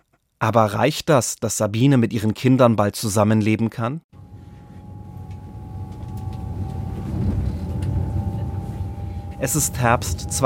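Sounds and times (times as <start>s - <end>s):
speech: 0.4s - 4.2s, 9.4s - 10.4s
faint tonal hum: 4.2s - 10.4s
train ride rumble: 4.2s - 10.4s.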